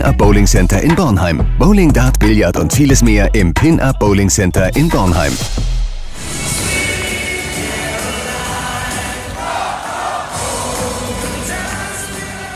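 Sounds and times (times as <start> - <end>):
speech: 0.1 - 5.8
basketball crowd cheering after a win in the first home game of the season: 7.6 - 12.5.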